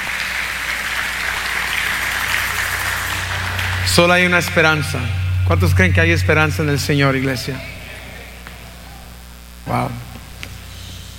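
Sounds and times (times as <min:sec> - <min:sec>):
audience applauding: 0:00.0 - 0:05.7
speech: 0:03.9 - 0:07.7, 0:09.7 - 0:10.1.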